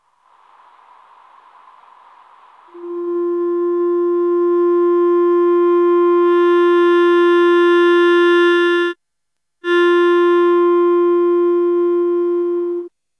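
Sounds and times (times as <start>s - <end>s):
clarinet: 2.8s - 9.0s, 9.6s - 12.9s.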